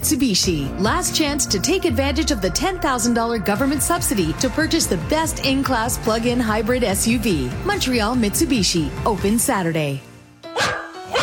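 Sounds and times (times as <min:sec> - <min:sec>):
speech: 0:00.0 - 0:10.7
happy dog barking: 0:10.5 - 0:11.2.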